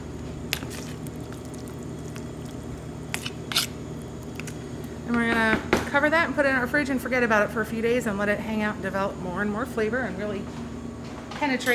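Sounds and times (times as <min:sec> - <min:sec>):
low hum: 0:00.0 - 0:11.7
vegetables being stirred in a vinegar bath: 0:00.5 - 0:04.6
speech: 0:05.1 - 0:10.6, 0:11.4 - 0:11.7.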